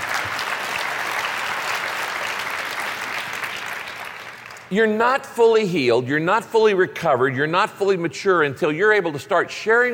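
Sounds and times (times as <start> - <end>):
audience clapping: 0.0 - 4.7
speech: 4.7 - 9.9.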